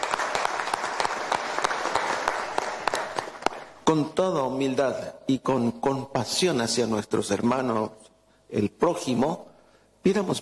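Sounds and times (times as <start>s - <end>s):
crowd applauding: 0.0s - 3.8s
speech: 3.9s - 10.4s.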